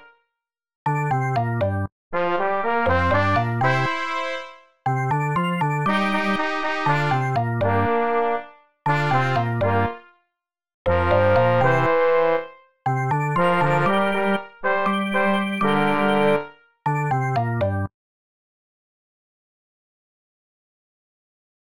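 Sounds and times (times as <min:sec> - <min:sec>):
melody: 0:00.9 - 0:01.9, 0:02.9 - 0:09.9, 0:10.9 - 0:12.0, 0:12.9 - 0:17.9.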